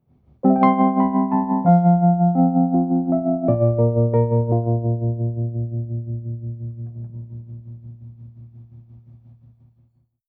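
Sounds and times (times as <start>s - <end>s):
keyboard playing: 0.4s - 8.2s.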